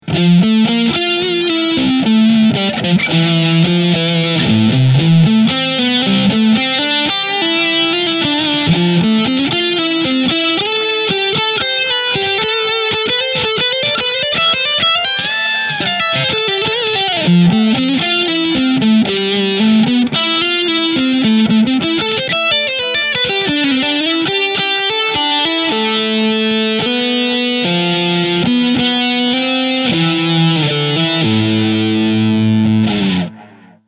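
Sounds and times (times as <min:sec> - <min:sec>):
OD1 overdrive with delay: 0:00.0 - 0:33.8.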